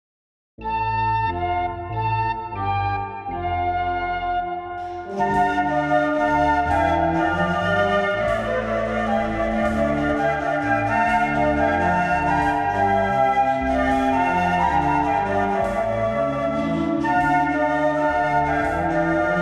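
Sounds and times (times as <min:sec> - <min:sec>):
flute: 0:00.6 - 0:19.4.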